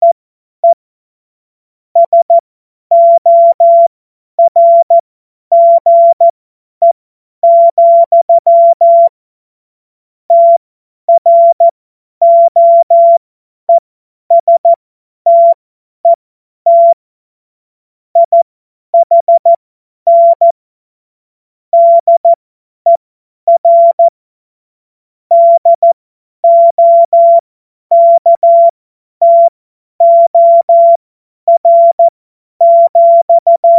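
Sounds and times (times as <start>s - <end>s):
CW Morse code beeps: 2.0s - 9.1s, 10.3s - 17.0s, 18.2s - 18.4s, 19.0s - 20.6s, 21.8s - 24.1s, 25.3s - 33.7s.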